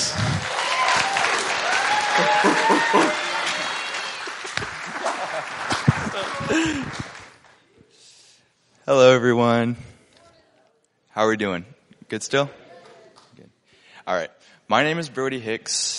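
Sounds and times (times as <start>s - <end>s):
audience applause at a church youth camp service welcoming a young speaker: 0.0s - 7.6s
people laughing: 4.3s - 7.2s
speech: 8.9s - 9.9s, 11.2s - 12.6s, 14.1s - 15.9s.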